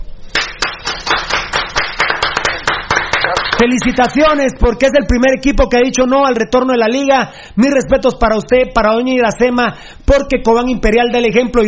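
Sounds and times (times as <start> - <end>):
people clapping: 0.3 - 4.3
speech: 3.6 - 11.6.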